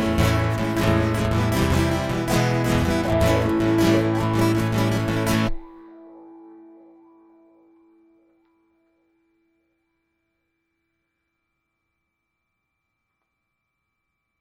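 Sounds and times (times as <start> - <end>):
electric guitar interlude: 0.0 - 9.0.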